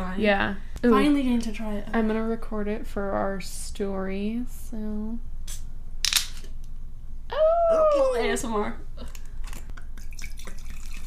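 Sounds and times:
speech: 0.2 - 5.6, 7.3 - 9.1
wine pouring into a glass: 10.0 - 11.0.

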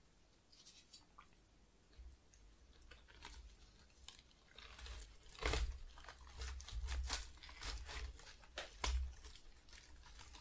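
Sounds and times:
flower crinkling and rustling: 2.6 - 10.3.

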